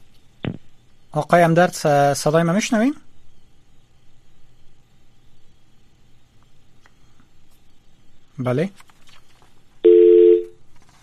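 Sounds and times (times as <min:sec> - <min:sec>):
speech: 0:01.2 - 0:03.0, 0:08.4 - 0:08.9
telephone line tone after a call drops: 0:09.8 - 0:10.6.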